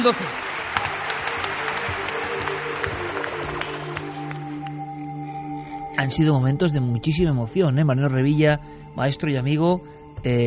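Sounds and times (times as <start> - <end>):
speech: 0.0 - 0.5, 6.0 - 10.4
applause: 0.0 - 4.9.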